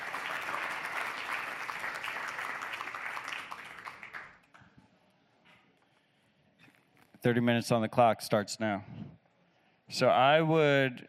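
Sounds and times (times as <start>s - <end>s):
audience applause: 0.0s - 4.6s
speech: 7.2s - 9.0s, 9.9s - 11.0s.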